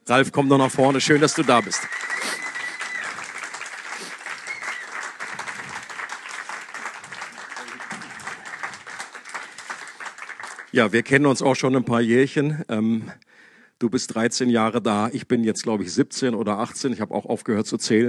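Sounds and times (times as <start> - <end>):
speech: 0.1 - 2.4, 10.8 - 18.0
audience applause: 0.1 - 10.8.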